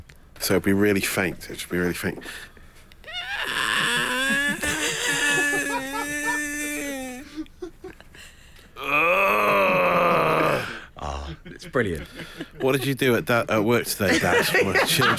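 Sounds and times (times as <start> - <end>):
speech: 0.5 - 2.5, 11.5 - 15.1
man imitating a stressed plant screaming: 3.0 - 7.5, 8.8 - 11.4
laughter: 3.1 - 8.2, 11.2 - 15.1.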